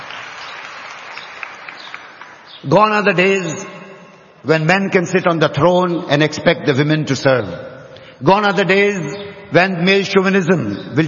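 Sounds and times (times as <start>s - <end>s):
audience clapping: 0.0s - 2.6s
speech: 2.6s - 3.8s, 4.4s - 11.0s.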